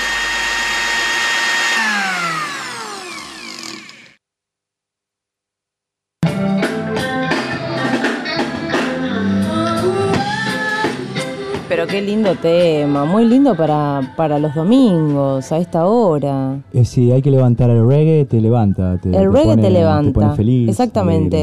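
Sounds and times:
blender whirring: 0.0 - 4.2
busy music: 6.2 - 21.4
speech: 11.8 - 21.4.

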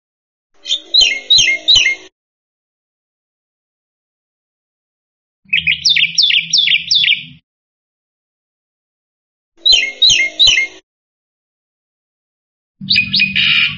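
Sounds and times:
black-winged myna chirping: 0.6 - 2.1, 5.5 - 7.4, 9.6 - 10.8, 12.8 - 13.7.

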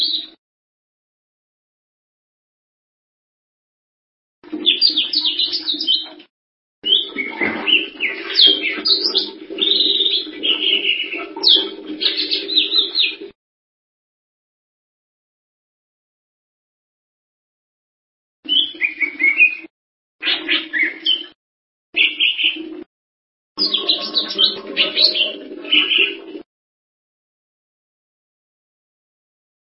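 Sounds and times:
bird song twittering: 0.0 - 0.4, 4.6 - 6.2, 6.8 - 13.2, 18.5 - 21.4, 22.0 - 22.6, 23.6 - 26.2.

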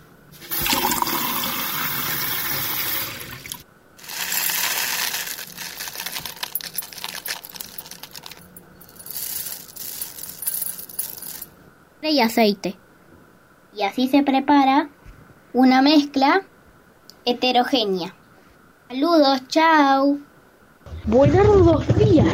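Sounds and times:
water pouring: 0.4 - 8.3
spoon clinking and scraping while stirring oats into water: 4.0 - 11.5
speech: 12.2 - 12.8, 13.8 - 15.0, 15.6 - 16.5, 17.3 - 18.2, 18.9 - 20.3, 21.1 - 22.3.

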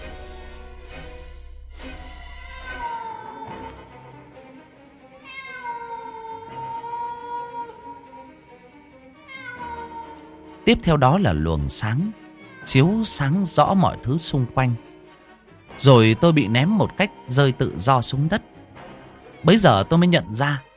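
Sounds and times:
cat meowing: 2.3 - 3.9, 5.1 - 8.4, 9.1 - 10.5, 12.1 - 14.3
speech: 10.7 - 14.9, 15.8 - 18.5, 19.4 - 20.7.

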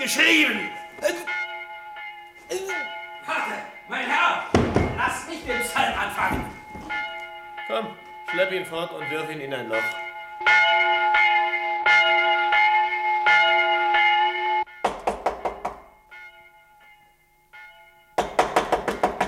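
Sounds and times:
speech: 0.0 - 1.4, 2.5 - 7.0, 7.7 - 11.2
ringing bell tones: 0.0 - 14.8, 15.5 - 18.4
rapid loud knocking on a door: 4.5 - 5.0, 14.8 - 15.8, 18.2 - 19.2.

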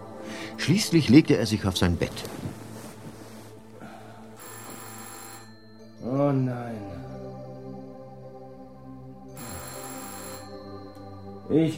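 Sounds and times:
speech: 0.6 - 2.5
telephone bell ringing: 4.4 - 6.0, 9.4 - 11.2.

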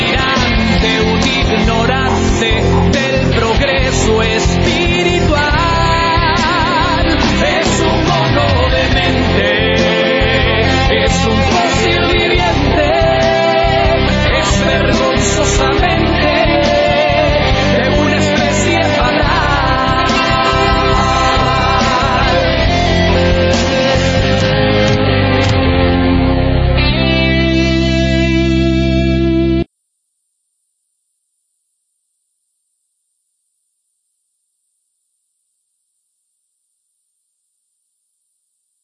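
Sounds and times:
rock song with distorted effects-heavy guitar and driving beat: 0.0 - 29.7.

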